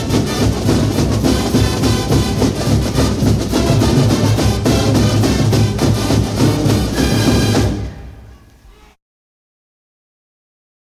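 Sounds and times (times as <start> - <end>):
fight song: 0.0 - 8.5
opening drum cadence: 0.0 - 8.9.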